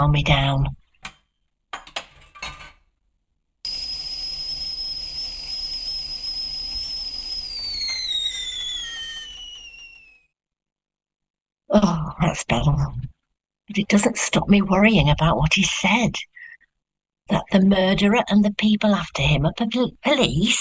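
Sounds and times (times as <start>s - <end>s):
speech: 0.0s - 0.8s, 11.8s - 13.1s, 13.7s - 16.3s, 17.3s - 20.5s
kettle whistling as water boils: 3.7s - 10.3s.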